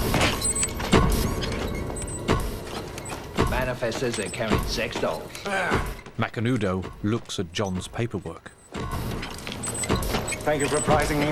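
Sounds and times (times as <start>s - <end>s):
faint high squeaks: 0.0s - 6.0s, 8.6s - 11.3s
elevator doors sliding open: 0.0s - 6.1s, 8.7s - 11.3s
speech: 3.6s - 9.1s, 10.4s - 11.3s.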